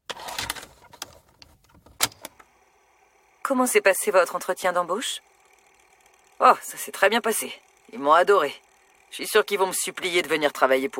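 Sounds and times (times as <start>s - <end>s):
play key pressed on a tape recorder: 0.4s - 2.6s
speech: 3.5s - 5.3s, 6.4s - 10.9s.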